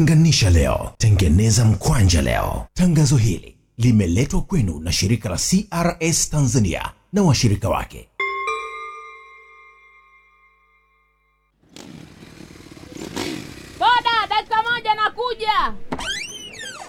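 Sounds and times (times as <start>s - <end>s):
speech: 0.0s - 8.1s, 15.0s - 16.2s
motorcycle engine starting and revving: 11.6s - 14.3s.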